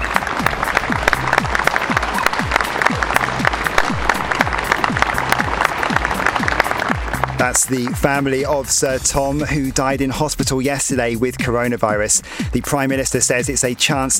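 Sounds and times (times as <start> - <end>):
crowd of people clapping outdoors: 0.0 - 8.9
speech: 7.4 - 14.1.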